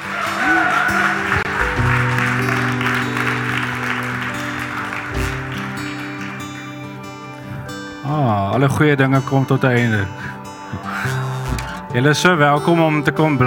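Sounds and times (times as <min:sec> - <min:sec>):
congregation clapping at the close of a church service: 0:00.0 - 0:08.0
sustained low musical tones: 0:00.0 - 0:13.4
speech: 0:08.6 - 0:10.4, 0:11.9 - 0:13.4.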